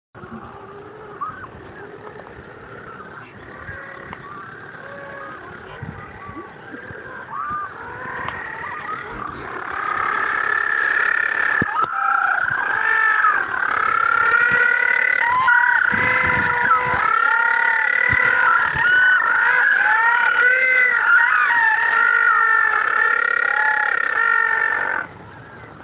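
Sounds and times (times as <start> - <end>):
penguin calls braying and honking: 0.5 - 25.1.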